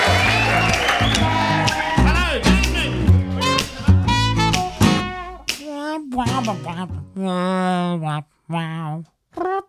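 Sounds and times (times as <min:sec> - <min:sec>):
voice imitating a show's theme music at an Edinburgh comedy performance: 0:00.2 - 0:09.5
sharp clicks: 0:00.6 - 0:03.0, 0:04.5 - 0:06.7.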